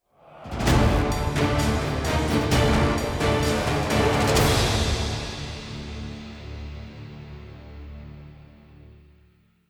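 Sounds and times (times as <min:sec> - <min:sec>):
boss fight outro game music: 0:00.7 - 0:05.8.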